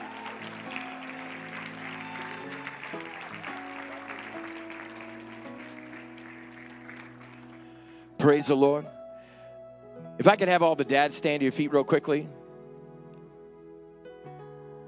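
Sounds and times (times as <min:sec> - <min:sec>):
audience hand clapping applause: 0:00.0 - 0:08.0
speech: 0:08.2 - 0:09.0, 0:10.2 - 0:12.4.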